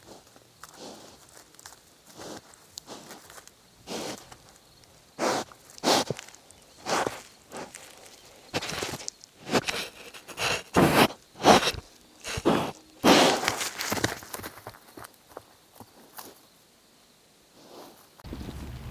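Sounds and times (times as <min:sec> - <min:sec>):
hedgehog: 0:05.2 - 0:13.7.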